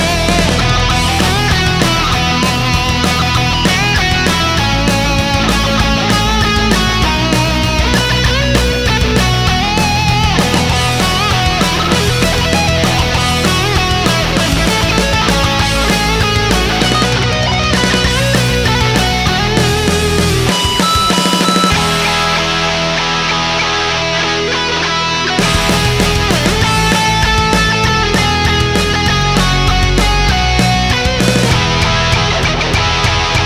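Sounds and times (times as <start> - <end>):
heavy metal Christmas music: 0.0 - 33.4.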